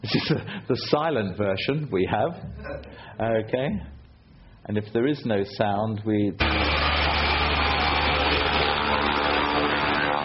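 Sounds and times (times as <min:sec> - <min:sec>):
speech: 0:00.0 - 0:04.0, 0:04.6 - 0:07.2
Cessna Caravan propeller plane engine droning: 0:06.4 - 0:10.2.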